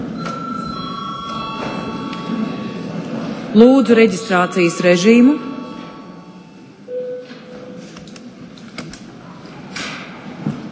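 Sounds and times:
session break electric bell ringing: 0.0 - 7.8
speech: 3.6 - 5.5.

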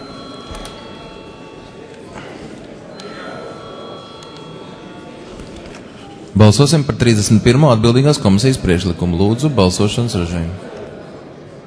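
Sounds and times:
parliament voting bell ringing: 0.0 - 9.1
speech: 6.4 - 10.7.

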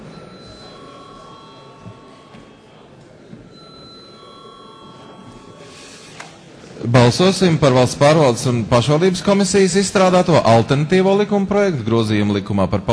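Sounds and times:
electric parliament bell ringing before a vote: 0.0 - 6.2
continuous murmur of parliament chamber noise: 0.0 - 12.9
speech: 6.9 - 12.9.

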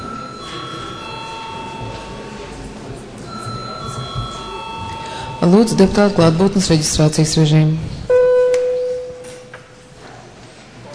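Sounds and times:
electric parliament session bell ringing: 0.0 - 2.6, 3.3 - 6.5, 8.1 - 9.6
murmur of voices: 0.0 - 10.9
speech: 5.4 - 7.9.

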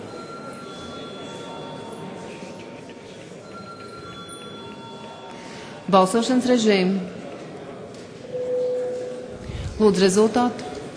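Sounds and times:
parliament voting bell ringing: 0.0 - 2.6, 3.4 - 5.5, 8.3 - 9.4
faint murmur of the chamber: 0.0 - 10.9
speech: 5.9 - 7.2, 9.8 - 10.7.

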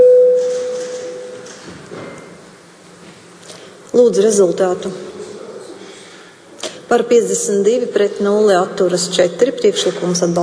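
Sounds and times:
electronic voting-mode tone in the Latvian Saeima chamber: 0.0 - 1.4
quiet room murmur: 0.0 - 10.4
speech: 4.0 - 5.1, 6.9 - 10.4.

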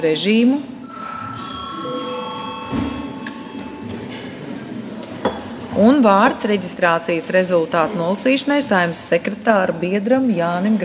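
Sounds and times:
speech: 0.0 - 0.7, 5.8 - 10.8
murmur of voices in a large chamber: 0.0 - 10.8
parliament session electronic bell tone: 0.8 - 4.1.

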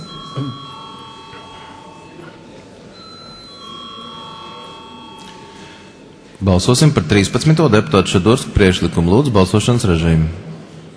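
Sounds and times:
bell rung in a parliament chamber to call a vote: 0.0 - 6.3
murmuring voices: 0.0 - 9.2
speech: 0.4 - 0.6, 6.4 - 10.5.

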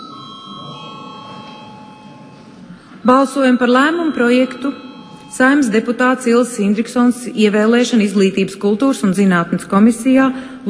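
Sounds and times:
parliament chamber bell ringing before a vote: 0.0 - 7.5
speech: 3.0 - 10.6.

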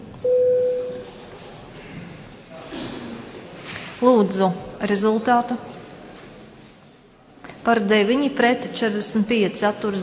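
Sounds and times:
parliament voting bell signal: 0.2 - 1.0
speech: 4.0 - 5.7, 7.7 - 10.0.

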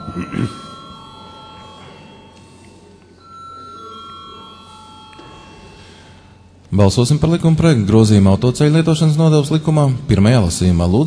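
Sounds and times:
parliament chamber voting bell electronic tone: 0.0 - 6.6
faint room murmur: 0.0 - 11.0
speech: 0.2 - 0.7, 6.7 - 11.0.

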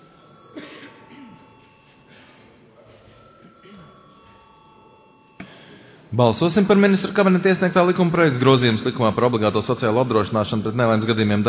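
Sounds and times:
parliament voting bell ringing: 0.0 - 11.4
person coughing: 0.5 - 2.4, 3.6 - 3.9
speech: 6.1 - 11.4.

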